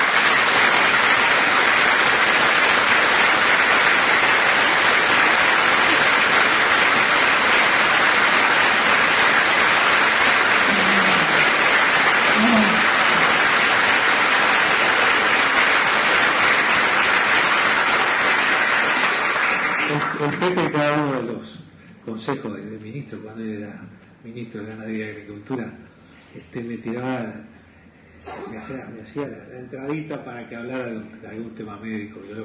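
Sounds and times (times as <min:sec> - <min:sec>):
audience applause: 0:00.0 - 0:21.0
speech: 0:22.1 - 0:27.5, 0:28.2 - 0:32.4.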